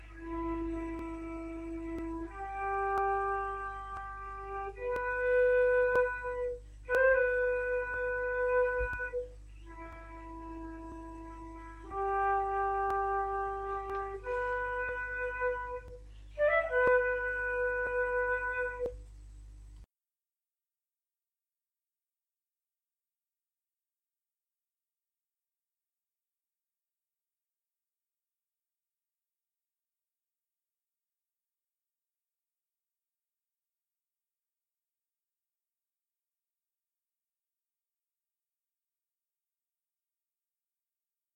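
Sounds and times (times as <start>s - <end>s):
flute: 0.0s - 19.0s.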